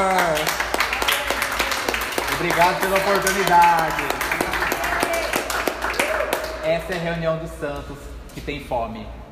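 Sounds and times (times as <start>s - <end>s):
audience applause: 0.0s - 6.7s
speech: 2.4s - 4.4s, 6.6s - 9.2s.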